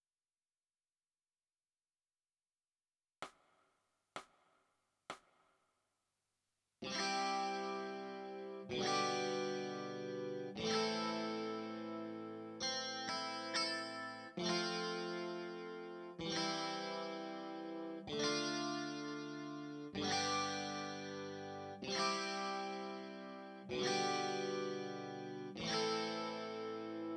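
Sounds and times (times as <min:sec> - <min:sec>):
electric guitar: 0:06.8 - 0:27.1.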